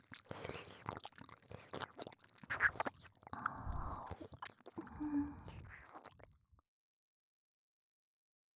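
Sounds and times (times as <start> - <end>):
ear licking sounds: 0.0 - 6.3.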